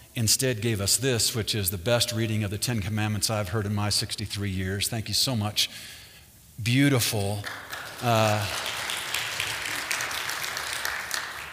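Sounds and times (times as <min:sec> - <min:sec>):
speech: 0:00.2 - 0:06.0, 0:06.6 - 0:08.7
audience clapping: 0:07.2 - 0:11.5.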